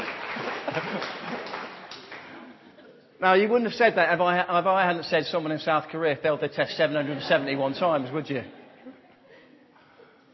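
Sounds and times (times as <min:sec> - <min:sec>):
audience applause: 0:00.0 - 0:02.6
laughter: 0:00.4 - 0:03.1, 0:06.6 - 0:09.7
speech: 0:00.8 - 0:01.5, 0:03.2 - 0:08.6.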